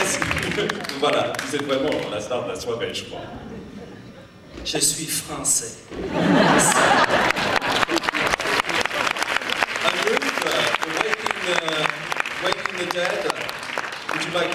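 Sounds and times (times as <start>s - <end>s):
laughter: 0.0s - 1.7s, 3.0s - 4.6s, 5.9s - 13.5s
audience applause: 0.0s - 2.2s, 6.6s - 14.5s
speech: 0.6s - 3.6s, 4.6s - 7.3s.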